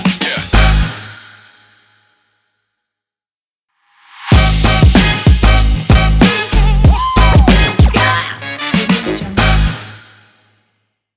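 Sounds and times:
TV show audio: 3.9s - 10.3s.

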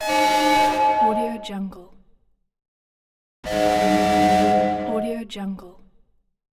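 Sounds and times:
train horn: 0.0s - 1.6s, 3.5s - 5.2s.

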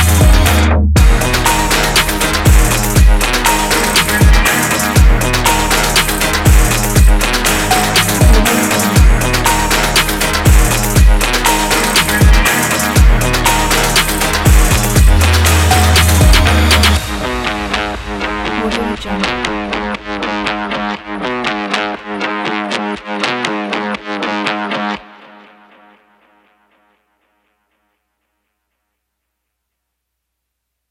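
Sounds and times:
action sport hip hop music: 0.0s - 25.2s.

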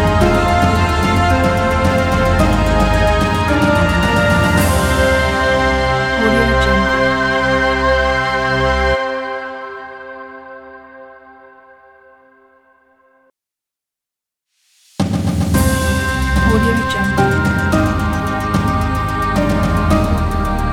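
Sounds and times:
epic victory music: 0.0s - 9.0s, 15.4s - 20.7s.

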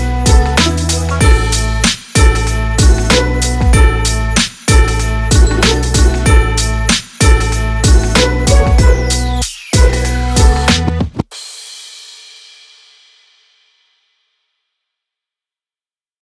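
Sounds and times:
Christmas hip-hop music: 0.0s - 12.1s.

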